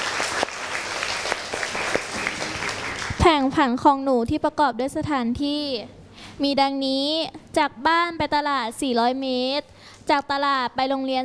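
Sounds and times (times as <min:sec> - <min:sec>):
class applauding together: 0:00.0 - 0:03.4
speech: 0:03.2 - 0:11.2.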